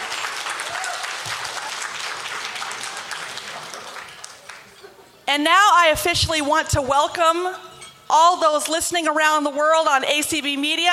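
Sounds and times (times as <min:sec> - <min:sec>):
audience applause for hotel staff: 0:00.0 - 0:04.8
speech: 0:05.3 - 0:10.9.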